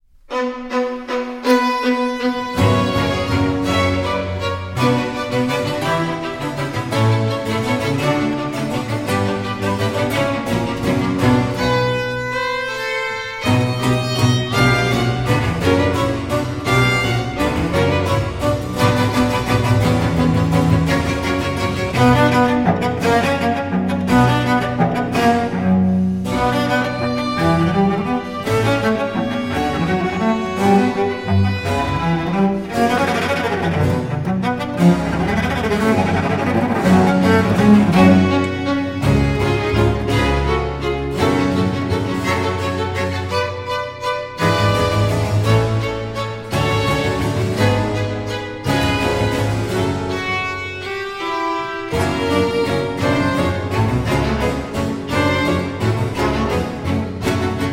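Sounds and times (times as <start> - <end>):
cello concerto: 0.0 - 57.7.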